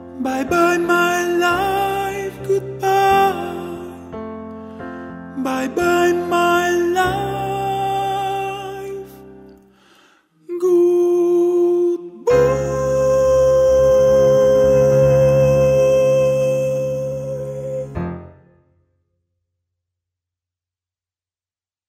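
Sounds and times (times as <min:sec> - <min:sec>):
soprano singing: 0:00.0 - 0:09.5, 0:10.4 - 0:18.3.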